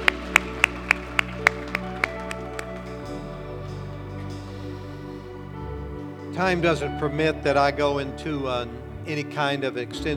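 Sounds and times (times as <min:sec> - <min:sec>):
audience applause: 0:00.0 - 0:07.4
speech: 0:06.4 - 0:10.1.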